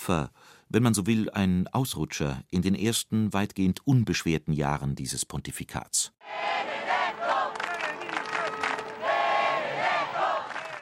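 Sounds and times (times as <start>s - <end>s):
speech: 0.0s - 7.0s
crowd chanting a name: 6.2s - 10.8s.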